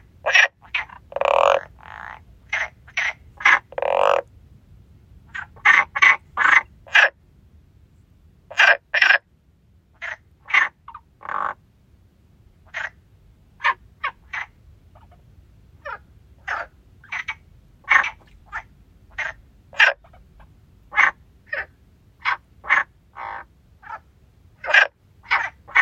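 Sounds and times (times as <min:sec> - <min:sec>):
frogs croaking: 0:00.0 - 0:04.3, 0:05.3 - 0:07.2, 0:08.5 - 0:09.3, 0:10.0 - 0:11.6, 0:12.6 - 0:13.0, 0:13.6 - 0:15.2, 0:15.8 - 0:20.2, 0:20.9 - 0:24.0, 0:24.6 - 0:25.8.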